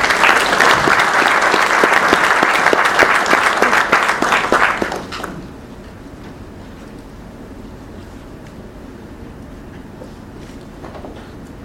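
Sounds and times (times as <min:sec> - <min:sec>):
audience applause: 0:00.0 - 0:05.4.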